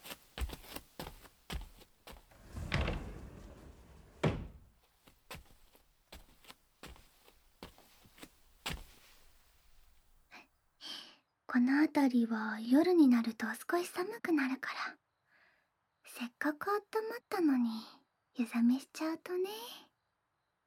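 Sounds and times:
Japanese shoji paper sliding door being closed: 0:02.1 - 0:04.7
speech: 0:11.6 - 0:14.9, 0:16.4 - 0:19.8.

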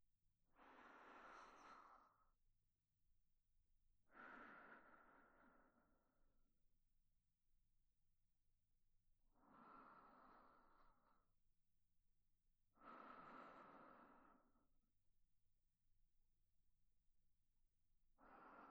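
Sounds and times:
sleeping breaths on the right channel: 0:00.5 - 0:02.4, 0:04.1 - 0:06.2, 0:09.3 - 0:11.3, 0:12.7 - 0:14.7, 0:18.2 - 0:18.6.

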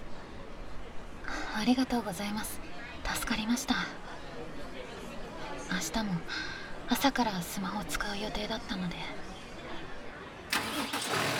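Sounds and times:
speech: 0:01.6 - 0:04.6, 0:05.7 - 0:09.2
night bus engine starting up: 0:10.5 - 0:11.3.

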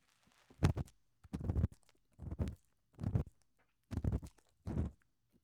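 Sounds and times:
ear pick in right ear: 0:00.6 - 0:01.7, 0:04.0 - 0:05.0.

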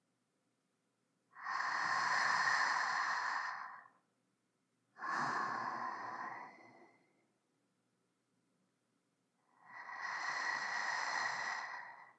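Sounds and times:
sleeping breath: 0:01.4 - 0:04.0, 0:05.0 - 0:07.2, 0:09.5 - 0:12.1.

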